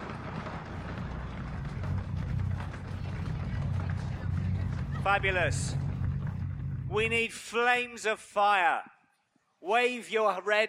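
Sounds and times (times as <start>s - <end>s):
audience thumping the ground like an earthquake: 0.0s - 6.8s
speech: 5.0s - 5.8s, 6.9s - 8.9s, 9.6s - 10.6s.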